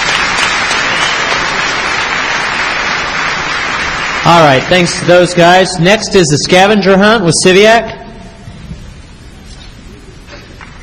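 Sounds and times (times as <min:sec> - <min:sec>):
crowd clapping: 0:00.0 - 0:05.5, 0:10.5 - 0:10.8
speech: 0:04.2 - 0:08.0.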